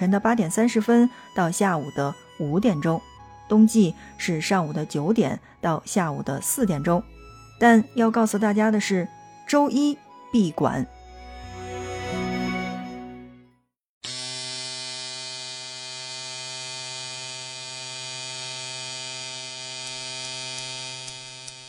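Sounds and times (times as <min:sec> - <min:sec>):
speech: 0:00.0 - 0:11.0
electric hair clippers buzzing: 0:14.0 - 0:21.6.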